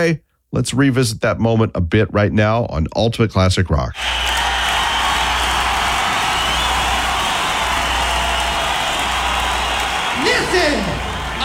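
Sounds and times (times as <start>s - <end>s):
speech: 0.0s - 4.3s
live concert crowd cheering and applauding: 4.0s - 11.4s.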